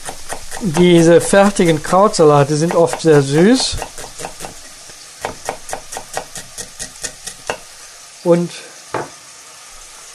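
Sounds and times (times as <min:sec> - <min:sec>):
onions sweating in pan: 0:00.0 - 0:10.1
speech: 0:00.6 - 0:03.9, 0:08.2 - 0:08.7.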